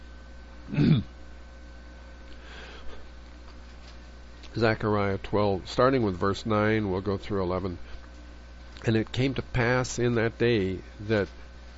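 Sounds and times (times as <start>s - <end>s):
hum: 0.0s - 11.7s
throat clearing: 0.7s - 1.2s
faint breathing: 2.3s - 3.2s
speech: 4.6s - 7.9s, 8.8s - 11.4s.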